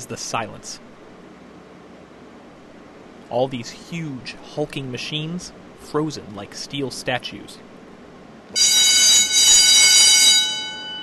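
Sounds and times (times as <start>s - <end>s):
speech: 0.0s - 0.9s, 3.3s - 7.7s
loud factory bell ringing: 8.6s - 11.0s.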